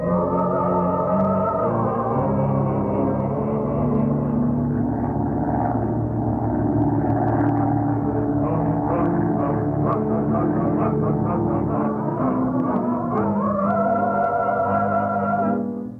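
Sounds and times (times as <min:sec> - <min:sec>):
airplane engine roaring in flight: 0:00.0 - 0:15.9.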